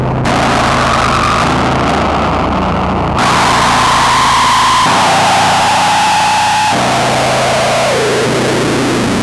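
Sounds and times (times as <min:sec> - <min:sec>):
metal music: 0:00.2 - 0:09.2.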